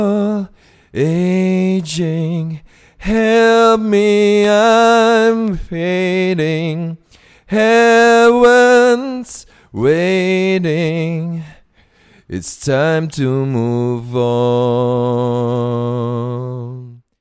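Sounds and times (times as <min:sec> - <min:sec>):
male vocal recorded on a studio condenser microphone: 0:00.0 - 0:11.6, 0:12.3 - 0:17.2.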